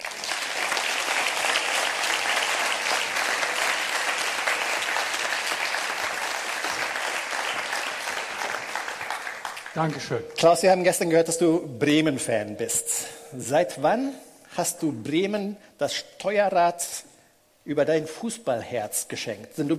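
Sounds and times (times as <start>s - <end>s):
church congregation applause at an Andreas parish community event: 0.0s - 10.6s
speech: 9.8s - 19.7s.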